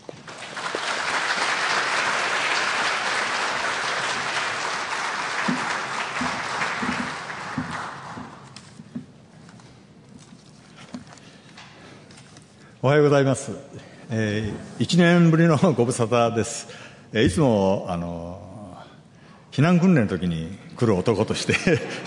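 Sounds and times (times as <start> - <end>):
audience applause welcoming a speaker: 0.0 - 8.6
speech: 12.8 - 18.5, 19.6 - 22.0.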